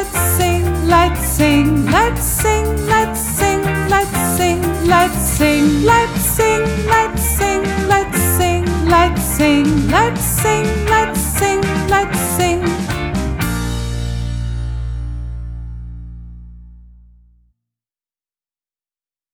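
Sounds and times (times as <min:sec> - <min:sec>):
American song: 0:00.0 - 0:14.7.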